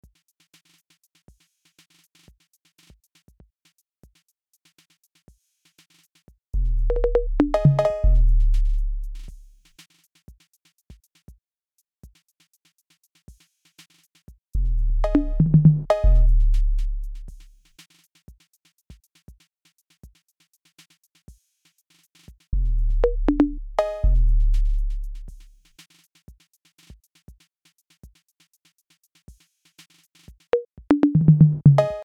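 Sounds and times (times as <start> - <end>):
808 drum machine groove: 6.6 - 9.6, 14.6 - 17.6, 22.6 - 25.7, 30.5 - 32.0.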